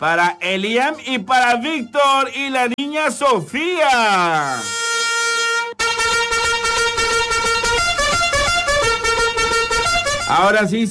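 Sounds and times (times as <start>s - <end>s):
speech: 0.0s - 4.8s, 10.3s - 10.8s
horn blast greeting sound effect: 4.4s - 10.6s.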